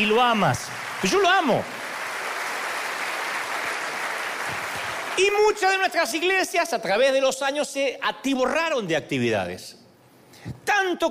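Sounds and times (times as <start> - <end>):
speech: 0.0 - 1.8, 5.2 - 9.8, 10.4 - 11.0
audience applauding: 0.0 - 5.8.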